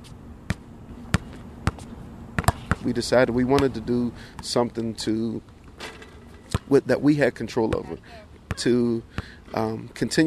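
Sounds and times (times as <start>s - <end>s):
basketball bouncing on an outdoor court: 0.5s - 2.8s, 3.4s - 3.8s, 6.5s - 6.7s, 8.5s - 8.7s
speech: 2.8s - 5.5s, 6.7s - 10.2s.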